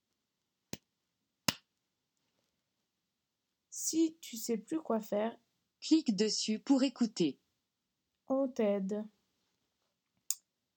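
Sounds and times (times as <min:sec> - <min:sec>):
small hands clapping: 0:01.5 - 0:01.7
speech: 0:03.9 - 0:07.4, 0:08.3 - 0:09.2.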